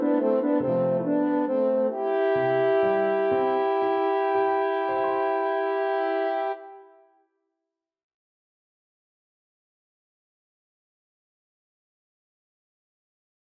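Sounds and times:
french horn duet: 0.0 - 7.0.

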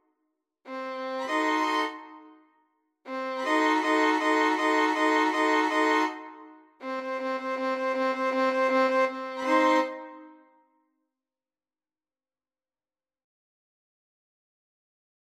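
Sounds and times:
violin trio playing: 0.7 - 2.1, 3.1 - 10.2.

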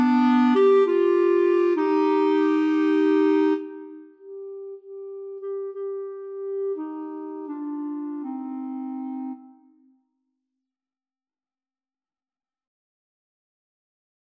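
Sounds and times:
clarinet trio: 0.0 - 9.8.

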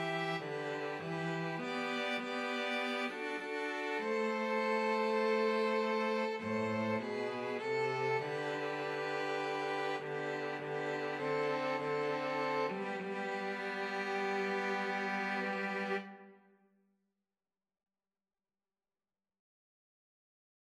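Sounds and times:
two violins: 0.0 - 16.4
cello: 0.0 - 16.5.

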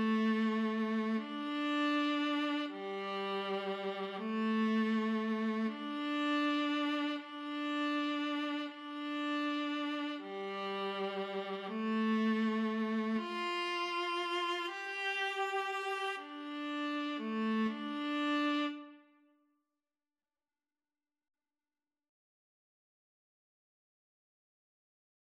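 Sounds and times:
viola duet: 0.0 - 19.1.

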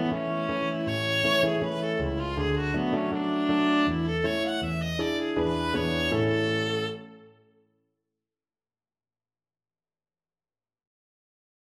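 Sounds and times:
viola playing: 0.0 - 7.4.

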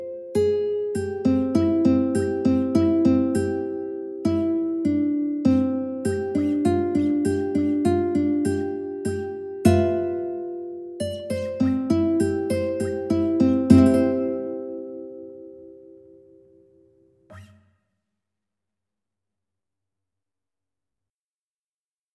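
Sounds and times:
ukulele melody: 0.0 - 17.6.

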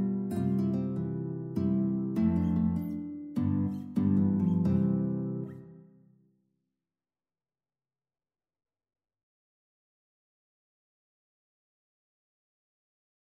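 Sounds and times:
mazurka on guitar: 0.0 - 5.9.

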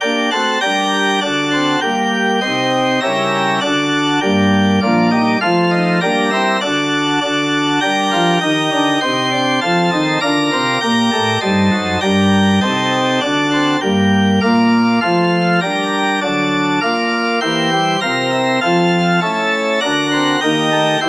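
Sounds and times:
organ: 0.0 - 21.0.

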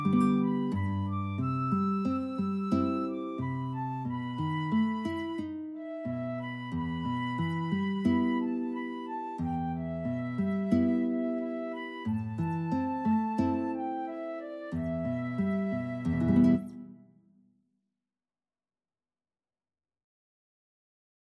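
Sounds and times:
flute in a duet: 0.0 - 17.1
guitar in a duet: 0.0 - 17.2.

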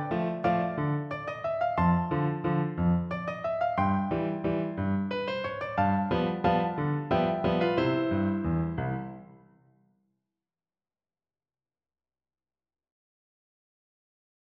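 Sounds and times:
piano playing wedding dance music: 0.0 - 9.5.

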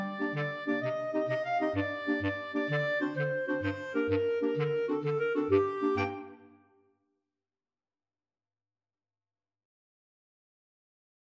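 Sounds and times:
clarinet choir playing: 0.0 - 6.6.

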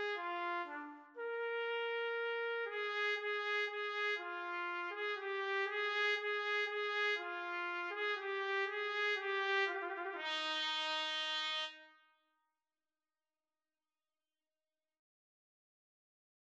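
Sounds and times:
trumpet and trombone duet playing a minuet: 0.0 - 11.9.

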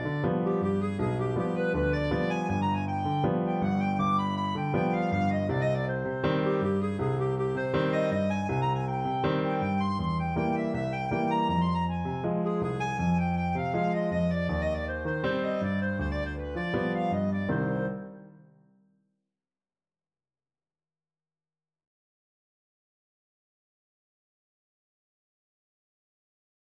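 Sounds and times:
tango on clarinet: 0.0 - 18.4.

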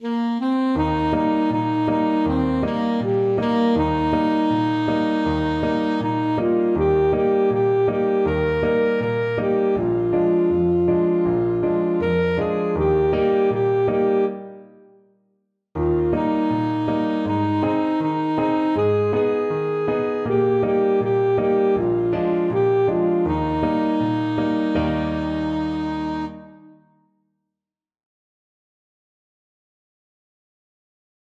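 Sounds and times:
folk tune on saxophone: 0.0 - 14.7, 15.8 - 26.9.

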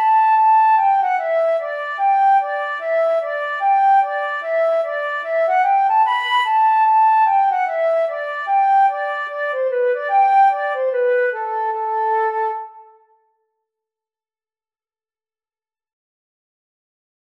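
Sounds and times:
flute: 0.0 - 13.4.

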